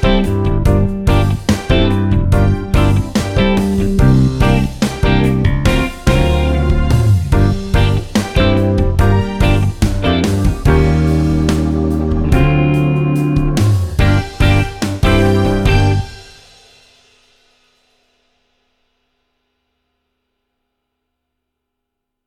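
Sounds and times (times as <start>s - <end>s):
all instruments playing: 0.0s - 16.6s.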